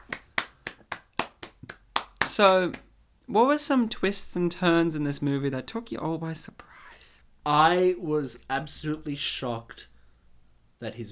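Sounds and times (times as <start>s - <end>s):
hand clapping: 0.0s - 2.9s
speech: 2.4s - 6.7s, 7.4s - 9.9s, 10.8s - 11.0s.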